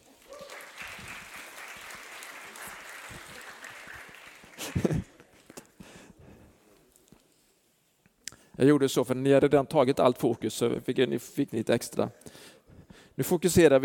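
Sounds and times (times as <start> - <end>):
crowd applause welcoming people: 0.0 - 5.6
speech: 8.6 - 12.5, 13.2 - 13.8.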